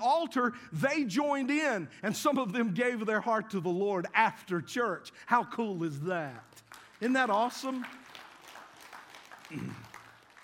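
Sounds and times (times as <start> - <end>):
speech: 0.2 - 8.0, 9.5 - 9.8
weak audience applause: 6.4 - 10.4.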